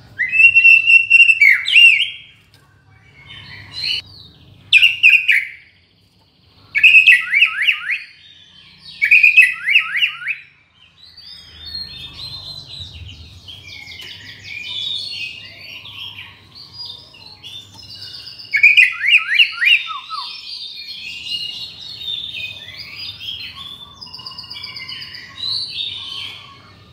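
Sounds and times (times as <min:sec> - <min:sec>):
shama from Borneo singing whistled phrases: 0:00.2 - 0:02.3, 0:06.8 - 0:08.2, 0:09.0 - 0:10.6, 0:18.4 - 0:20.5.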